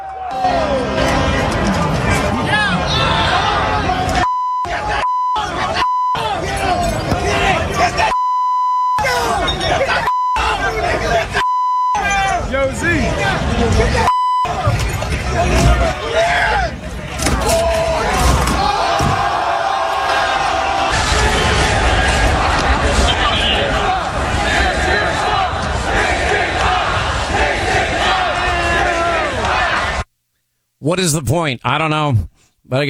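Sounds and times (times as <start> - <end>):
laughter: 0.0 - 23.9
rioting crowd shouting and yelling in New York City streets after a championship win: 0.0 - 30.1
bleep tones: 4.2 - 13.4, 14.0 - 16.7
thuds: 6.2 - 8.2, 9.0 - 20.9
speech: 31.0 - 32.8.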